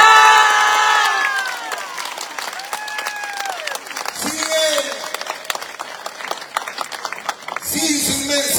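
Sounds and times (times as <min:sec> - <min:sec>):
audience cheering: 0:00.0 - 0:05.2
audience applauding: 0:00.0 - 0:08.4.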